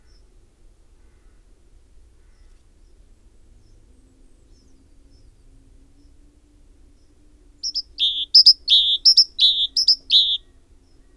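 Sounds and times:
great tit calling: 7.6 - 10.4.

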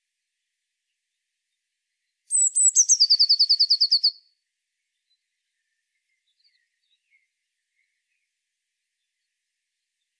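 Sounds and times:
Eurasian blue tit singing: 2.3 - 4.2.

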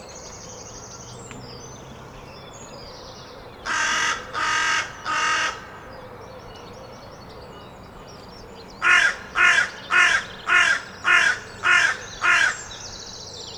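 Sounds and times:
carrion crow cawing: 3.6 - 5.9, 8.8 - 12.7.

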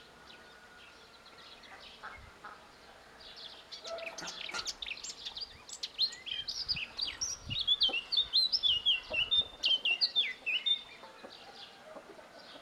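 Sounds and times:
Eurasian blackcap singing: 3.9 - 11.0.

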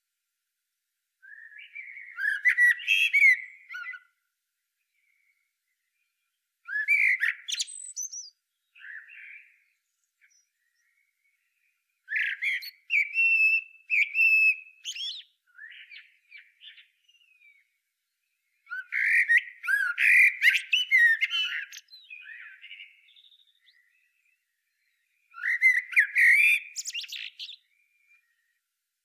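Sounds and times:
Eurasian blackbird song: 1.2 - 29.0.

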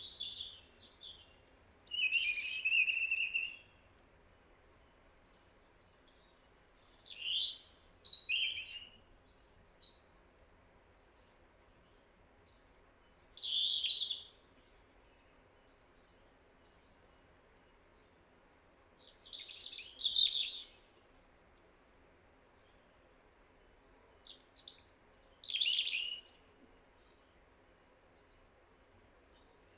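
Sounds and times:
European robin singing: 0.0 - 3.8, 5.4 - 10.2, 12.2 - 17.3, 19.0 - 20.8, 23.8 - 29.7.

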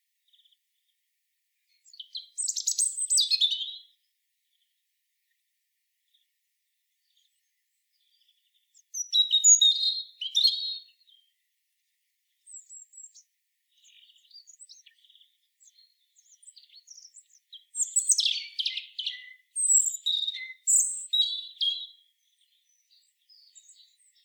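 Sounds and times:
European robin singing: 1.7 - 4.8, 7.0 - 11.4, 12.3 - 24.2.

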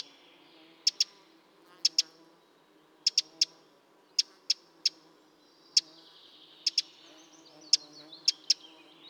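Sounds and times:
Eurasian wren calls: 0.0 - 1.2, 1.8 - 2.2, 3.0 - 3.6, 4.2 - 5.0, 6.6 - 9.0.

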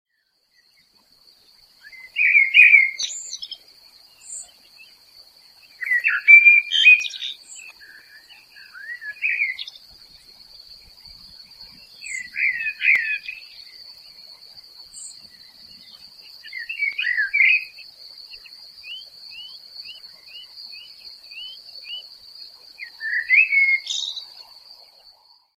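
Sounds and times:
common blackbird song: 0.1 - 24.9
high insect drone: 0.5 - 25.2.

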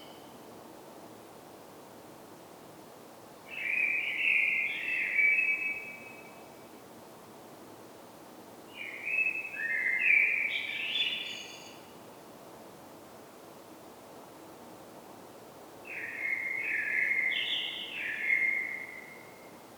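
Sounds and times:
Common blackbird song: 3.5 - 6.6, 8.7 - 11.9, 15.9 - 19.6.

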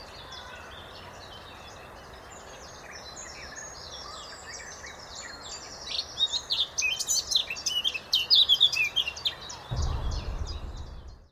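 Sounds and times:
Eurasian blackcap warbling song: 0.0 - 11.3
low rumbling noise: 9.7 - 11.3.

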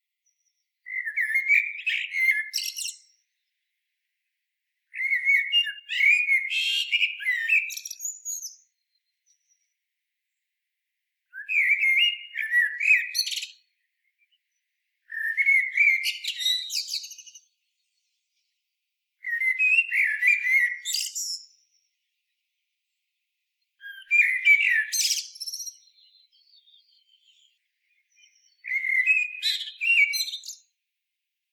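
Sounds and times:
common blackbird singing mellow warble: 0.3 - 3.5, 4.9 - 9.7, 11.3 - 14.5, 15.1 - 18.3, 19.2 - 21.9, 23.8 - 30.7.

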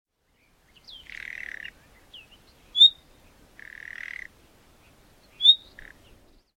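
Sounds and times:
common nightingale rasping churrs: 0.9 - 4.3, 5.4 - 6.1.

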